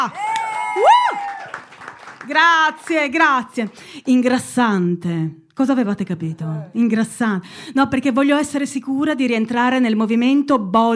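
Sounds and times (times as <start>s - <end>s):
speech: 0.0s - 0.2s, 2.2s - 10.9s
person whooping at a comedy show: 0.0s - 1.6s
crowd clapping at a comedy show: 0.0s - 4.2s.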